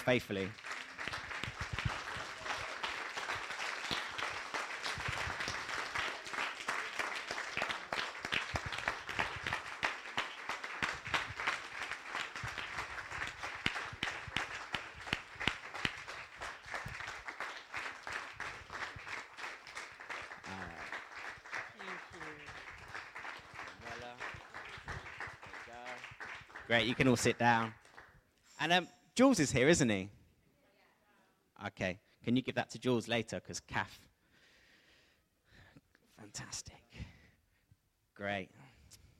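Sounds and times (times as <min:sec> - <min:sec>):
speech: 0:00.0 - 0:00.7, 0:26.8 - 0:27.8, 0:28.6 - 0:30.2, 0:31.7 - 0:34.1, 0:38.2 - 0:38.6
audience clapping: 0:00.0 - 0:28.2.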